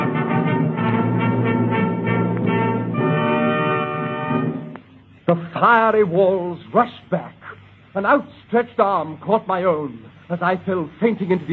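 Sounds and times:
loud blast of many trumpets: 0.0 - 4.8
speech: 5.3 - 11.5.

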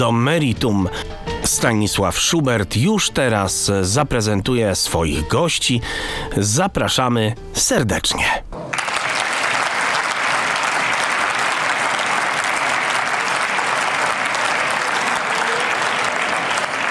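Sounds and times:
speech: 0.0 - 8.6
audience applause: 8.7 - 16.8.

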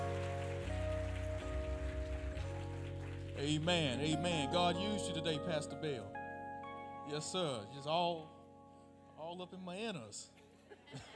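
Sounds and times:
audience applause: 0.0 - 4.6
speech: 3.4 - 6.2, 7.1 - 8.4, 9.2 - 11.1.

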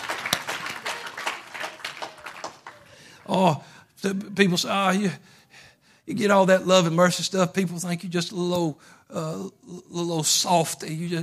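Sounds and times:
applause: 0.0 - 3.4
speech: 3.3 - 5.4, 6.1 - 11.2.

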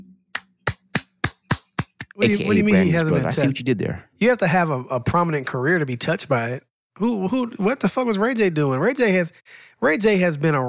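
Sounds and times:
slow clap: 0.3 - 2.2
speech: 2.2 - 10.6.

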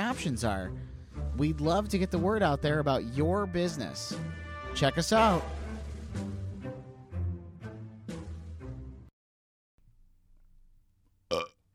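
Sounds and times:
speech: 0.1 - 5.6
burp sound effect: 11.3 - 11.6.

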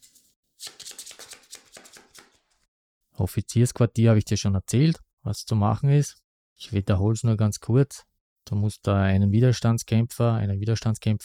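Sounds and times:
board game patrol cards being shuffled: 0.0 - 2.6
speech: 3.2 - 11.2.

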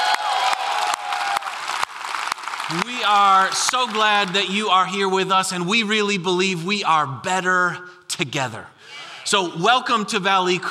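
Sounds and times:
church congregation applauding to welcome each other during a service: 0.0 - 4.8
speech: 2.7 - 10.6.

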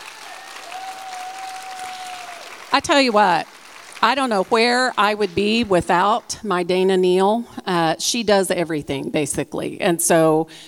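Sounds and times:
audience applause: 0.0 - 6.3
speech: 2.7 - 10.6.

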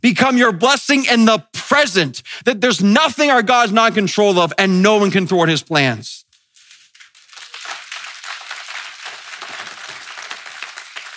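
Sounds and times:
speech: 0.0 - 6.2
crowd applause: 7.2 - 11.1.

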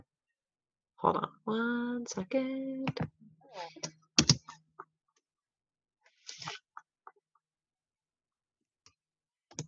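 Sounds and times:
speech: 1.0 - 3.9
computer keyboard clicks: 3.8 - 4.5.

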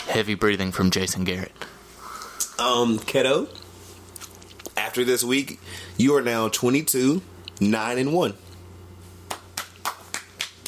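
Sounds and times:
low steady hum: 0.0 - 10.6
speech: 0.1 - 1.7, 2.6 - 3.6, 5.0 - 8.4
slow quiet golf clap: 9.2 - 10.6.

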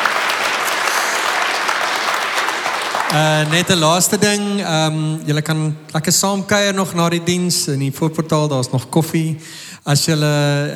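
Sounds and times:
audience clapping: 0.0 - 5.0
speech: 3.1 - 10.7.

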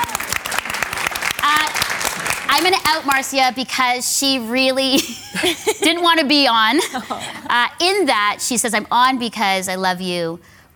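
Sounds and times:
audience applause: 0.0 - 2.8
speech: 2.6 - 10.7.

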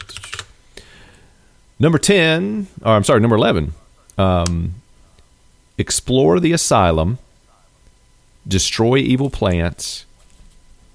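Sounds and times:
typing on a computer keyboard: 0.0 - 0.5
speech: 1.8 - 4.8, 5.8 - 7.2, 8.4 - 10.1.

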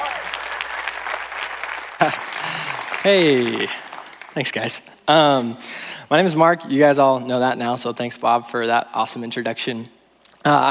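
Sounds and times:
church congregation applauding to welcome a speaker: 0.0 - 4.8
speech: 2.0 - 2.2, 3.0 - 3.8, 4.4 - 10.6.

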